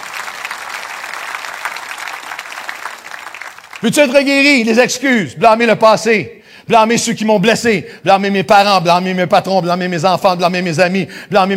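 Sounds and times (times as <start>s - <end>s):
audience applause: 0.0s - 4.2s
speech: 3.8s - 11.5s.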